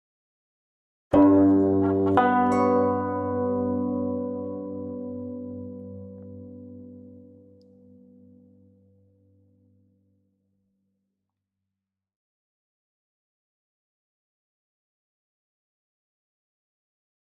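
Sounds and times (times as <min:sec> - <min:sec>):
guzheng playing triple musical intervals: 0:01.2 - 0:06.0.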